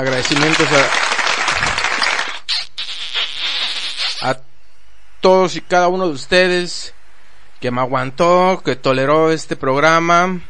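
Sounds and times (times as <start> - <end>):
speech: 0.0 - 1.2, 4.2 - 4.4, 5.2 - 7.0, 7.6 - 10.4
applause: 0.0 - 2.4.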